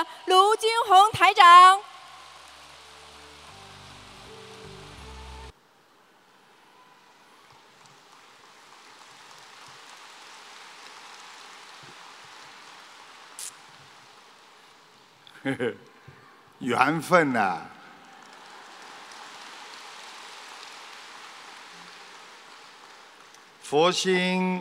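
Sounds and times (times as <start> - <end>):
speech: 0.0 - 1.9, 15.4 - 15.9, 16.6 - 17.7, 23.7 - 24.5
audience applause: 2.0 - 5.5, 7.0 - 15.2, 17.3 - 23.7.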